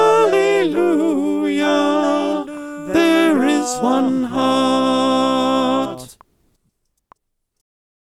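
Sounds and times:
alto choir singing: 0.0 - 6.2.

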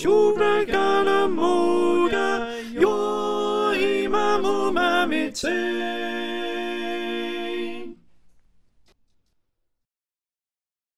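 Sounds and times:
soprano singing: 0.0 - 8.0.

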